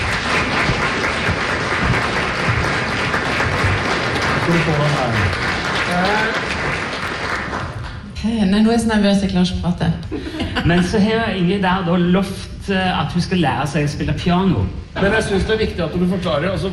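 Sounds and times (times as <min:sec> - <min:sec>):
audience applause in a full hall: 0:00.0 - 0:08.0
speech: 0:04.5 - 0:06.4, 0:08.2 - 0:16.7.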